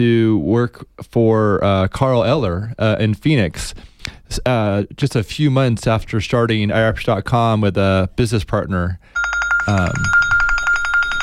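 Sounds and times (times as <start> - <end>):
speech: 0.0 - 10.2
mobile phone ringing with an incoming call: 9.2 - 11.2.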